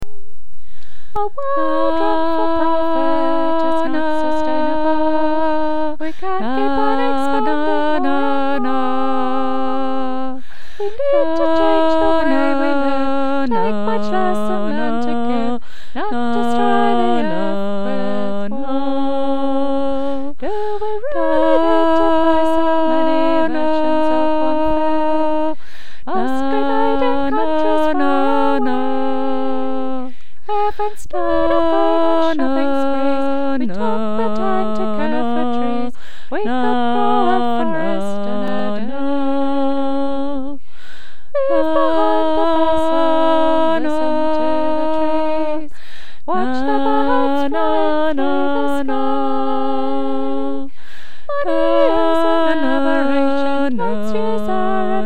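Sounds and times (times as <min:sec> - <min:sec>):
alto part: 0:00.0 - 0:55.0.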